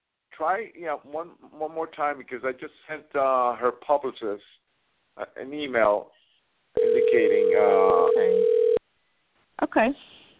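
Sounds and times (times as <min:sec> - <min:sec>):
speech: 0:00.4 - 0:04.6, 0:05.2 - 0:06.2, 0:06.8 - 0:08.6, 0:09.6 - 0:10.2
voice over the telephone line: 0:06.8 - 0:08.5
outgoing telephone call ring tone: 0:06.8 - 0:08.8.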